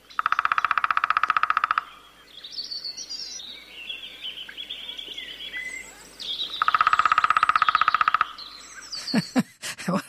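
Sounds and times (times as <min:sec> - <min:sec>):
lesser spotted woodpecker drumming: 0:00.1 - 0:02.0, 0:06.4 - 0:09.4.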